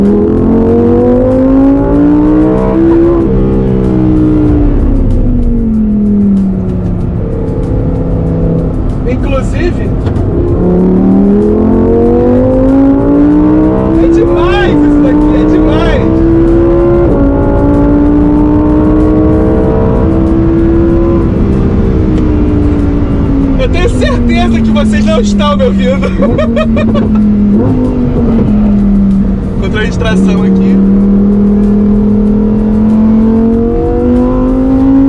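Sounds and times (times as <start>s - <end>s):
Lamborghini Huracán Tecnica engine revving and accelerating: 0.0s - 35.0s
laughter: 25.8s - 27.2s.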